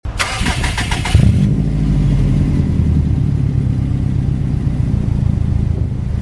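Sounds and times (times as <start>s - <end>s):
vehicle starting up: 0.1s - 6.1s.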